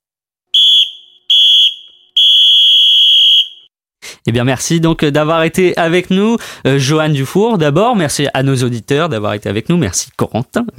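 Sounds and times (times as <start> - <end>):
final whistle blown: 0.5 - 3.7
speech: 4.3 - 10.7.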